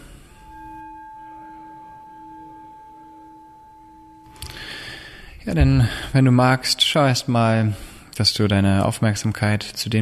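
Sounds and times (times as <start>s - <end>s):
meditation bell ringing: 0.0s - 6.6s
speech: 5.4s - 10.0s.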